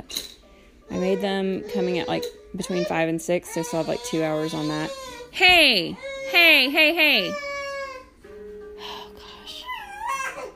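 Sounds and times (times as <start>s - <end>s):
fussy baby girl fretting and crying: 0.9s - 8.2s, 9.4s - 10.5s
speech: 1.0s - 7.5s.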